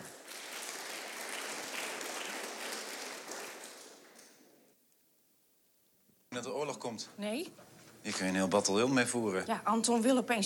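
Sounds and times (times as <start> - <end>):
audience applause: 0.0 - 4.4
speech: 6.4 - 10.4.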